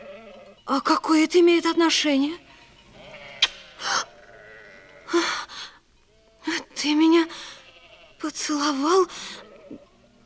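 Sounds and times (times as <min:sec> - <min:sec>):
sheep bleating: 0:00.0 - 0:00.6, 0:01.6 - 0:05.2, 0:06.1 - 0:08.3, 0:09.2 - 0:10.2
speech: 0:00.7 - 0:02.4, 0:08.5 - 0:09.8.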